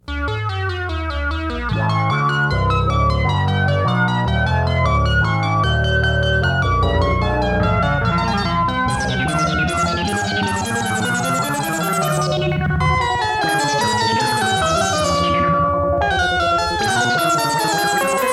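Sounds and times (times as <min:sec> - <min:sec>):
Moog synthesizer: 0:00.0 - 0:18.3.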